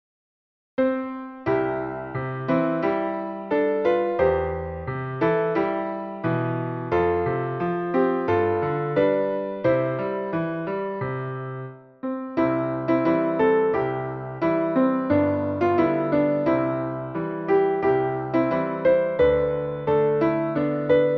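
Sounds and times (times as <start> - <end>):
piano: 0.8 - 21.1.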